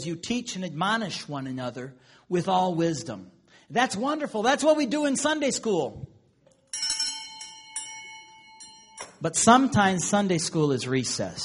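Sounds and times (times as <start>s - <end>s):
speech: 0.0s - 6.1s, 9.2s - 11.4s
bell rung to call children into a Sunday school classroom: 6.5s - 9.8s.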